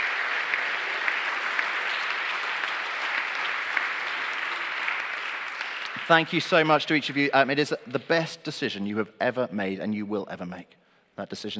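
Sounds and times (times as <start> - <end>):
sustained applause from a large audience: 0.0 - 7.8
speech: 6.1 - 11.5.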